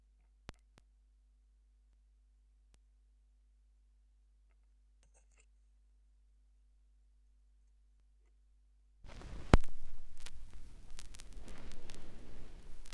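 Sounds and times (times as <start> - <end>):
vinyl record noise: 9.1 - 12.9.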